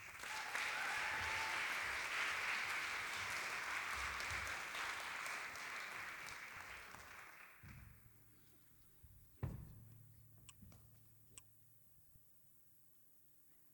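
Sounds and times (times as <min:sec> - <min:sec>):
audience cheering: 0:00.0 - 0:05.9
audience applause: 0:00.0 - 0:07.7.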